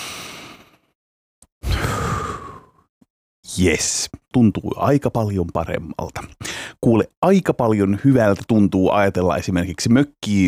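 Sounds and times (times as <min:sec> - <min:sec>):
deep breath in and out: 0:01.6 - 0:02.9, 0:06.4 - 0:06.8
speech: 0:03.6 - 0:10.4.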